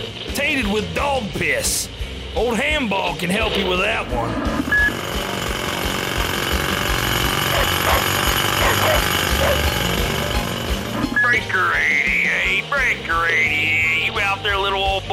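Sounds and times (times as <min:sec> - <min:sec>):
speech: 0:00.5 - 0:04.8, 0:11.3 - 0:15.1
jackhammer drilling: 0:03.4 - 0:12.2.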